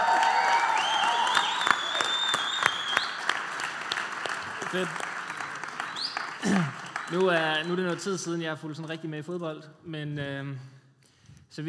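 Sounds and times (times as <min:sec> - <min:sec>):
shrill whistles: 0:00.0 - 0:03.7, 0:05.0 - 0:08.0
crowd applause: 0:00.0 - 0:08.4
speech: 0:04.7 - 0:05.1, 0:06.4 - 0:10.8.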